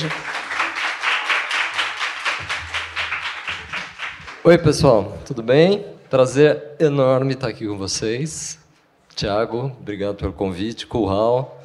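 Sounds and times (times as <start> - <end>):
speech: 0.0 - 0.3, 4.4 - 8.6, 9.2 - 11.6
audience clapping: 0.0 - 4.9.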